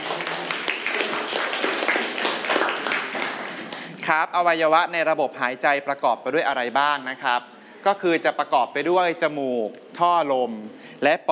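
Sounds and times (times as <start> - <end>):
classroom students applauding: 0.0 - 4.1
speech: 4.1 - 11.3.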